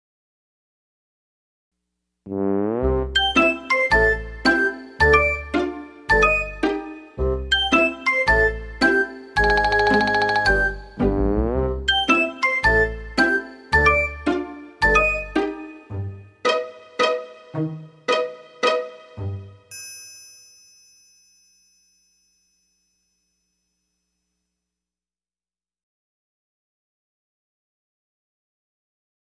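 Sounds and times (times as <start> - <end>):
music for children's videos: 2.6 - 19.8.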